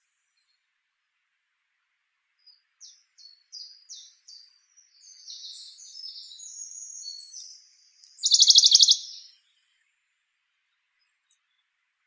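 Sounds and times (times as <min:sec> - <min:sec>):
Bonelli's warbler Phylloscopus bonelli: 0:05.0 - 0:09.3.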